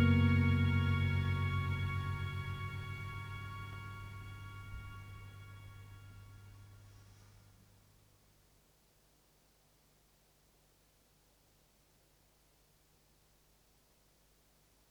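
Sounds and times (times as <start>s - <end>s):
instrumental lullaby: 0.0s - 5.0s.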